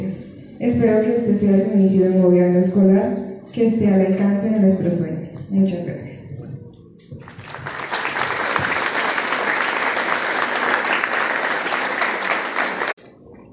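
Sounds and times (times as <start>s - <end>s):
speech: 0.6s - 6.1s
crowd applause: 7.2s - 13.0s.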